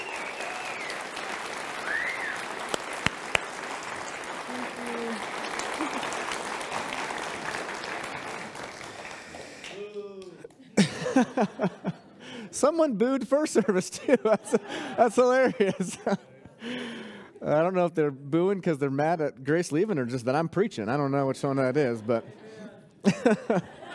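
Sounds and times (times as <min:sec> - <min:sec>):
loud cheers: 0:00.0 - 0:08.0
audience applause: 0:00.0 - 0:11.8
whoops and voices: 0:04.5 - 0:05.2
laughter: 0:04.5 - 0:06.9, 0:10.6 - 0:12.5, 0:13.4 - 0:17.2, 0:21.6 - 0:23.9
speech: 0:12.5 - 0:16.3, 0:17.5 - 0:23.9.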